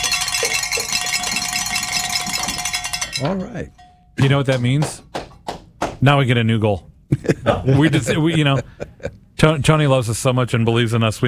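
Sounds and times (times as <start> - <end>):
bells ringing in celebration: 0.0 - 4.5
laughter: 0.2 - 2.7, 7.1 - 9.2
speech: 3.2 - 5.1, 6.0 - 11.2.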